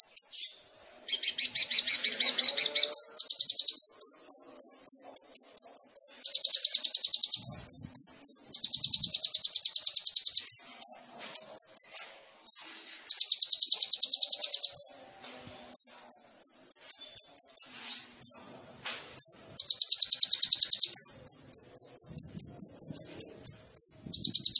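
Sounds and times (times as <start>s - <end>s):
sunbird song of trills and chips: 1.2s - 15.0s, 15.8s - 18.6s, 19.2s - 24.5s.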